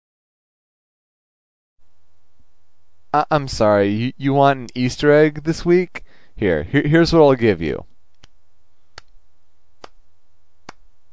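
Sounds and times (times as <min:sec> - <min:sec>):
speech: 0:03.1 - 0:07.9
slow hand claps: 0:10.6 - 0:10.8.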